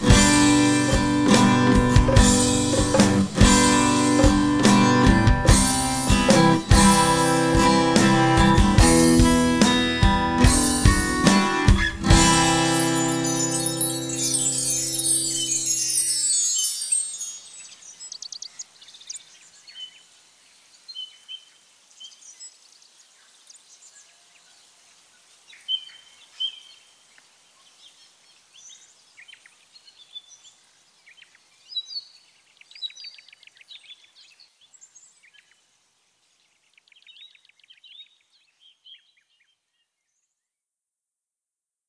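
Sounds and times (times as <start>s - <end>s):
ambient acoustic guitar: 0.0s - 15.4s.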